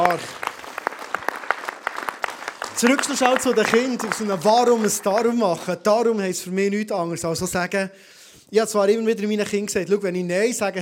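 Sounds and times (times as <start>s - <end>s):
audience clapping: 0.0s - 5.8s
speech: 0.1s - 0.5s, 2.8s - 10.8s.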